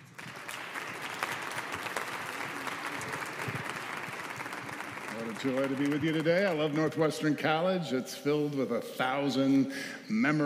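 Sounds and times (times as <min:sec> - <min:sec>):
audience at a college chapel service applauding a guest reverend: 0:00.0 - 0:07.1
speech: 0:05.4 - 0:10.4.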